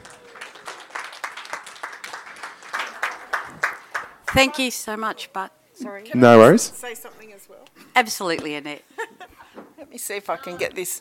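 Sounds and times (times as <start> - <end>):
audience applause: 0.0 - 4.4
speech: 4.3 - 9.1, 9.9 - 11.0.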